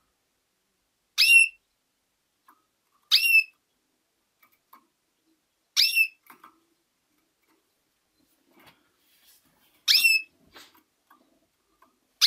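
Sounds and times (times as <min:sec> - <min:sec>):
female canary calls: 0:01.2 - 0:01.6, 0:03.0 - 0:03.6, 0:05.7 - 0:06.4, 0:09.8 - 0:10.7.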